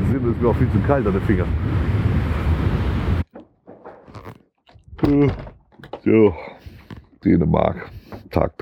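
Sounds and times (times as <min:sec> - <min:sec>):
strong wind: 0:00.0 - 0:03.3
speech: 0:00.2 - 0:02.0, 0:05.0 - 0:06.6, 0:07.2 - 0:08.6.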